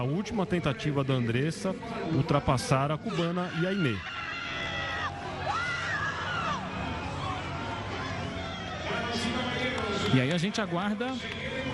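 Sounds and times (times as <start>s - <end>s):
speech: 0.0s - 4.3s, 10.1s - 11.7s
crowd cheering and shouting: 0.0s - 11.7s
stadium crowd applauding: 5.0s - 11.7s.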